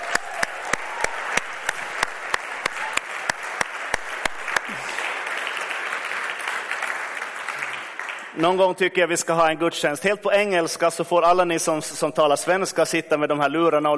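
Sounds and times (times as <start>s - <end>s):
applause: 0.0s - 9.0s
speech: 8.4s - 13.9s.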